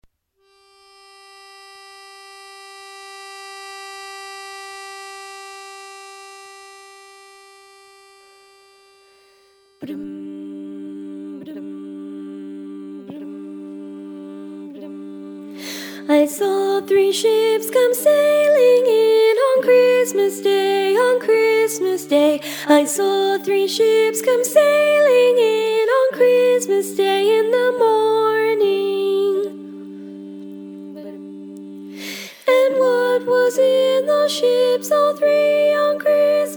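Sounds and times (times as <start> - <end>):
tenor-dominant singing of a carol: 9.8 - 36.5.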